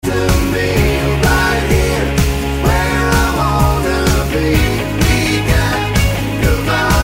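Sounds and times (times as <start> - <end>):
backing vocals: 0.0 - 7.0.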